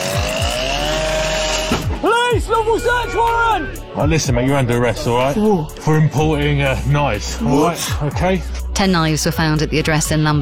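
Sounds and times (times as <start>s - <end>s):
circular saw cutting through a front door: 0.0s - 2.0s
speech: 2.6s - 10.4s.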